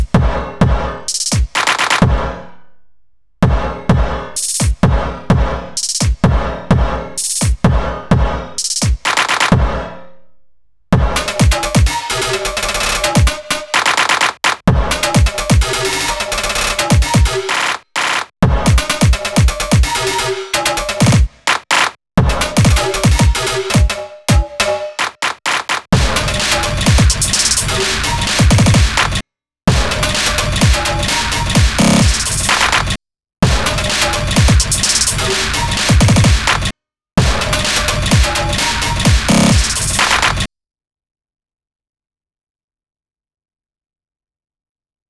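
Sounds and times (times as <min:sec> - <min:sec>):
drums: 0:00.0 - 0:02.3, 0:03.4 - 0:09.8, 0:10.9 - 0:40.5.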